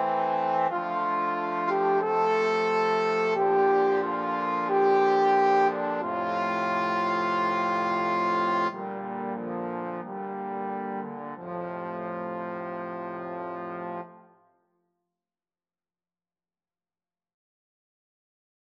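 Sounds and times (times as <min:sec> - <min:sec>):
trombone quartet playing a largo: 0:00.0 - 0:14.3.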